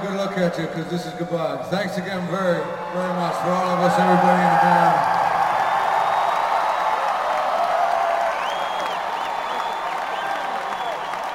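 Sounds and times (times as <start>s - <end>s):
speech: 0.0s - 5.2s
whoops and cheers: 2.4s - 11.3s
audience clapping: 3.5s - 11.3s.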